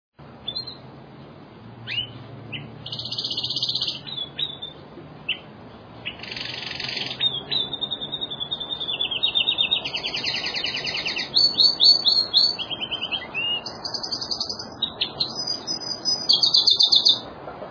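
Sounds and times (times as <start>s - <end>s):
songbird singing trills and chattering phrases: 0.2s - 17.4s.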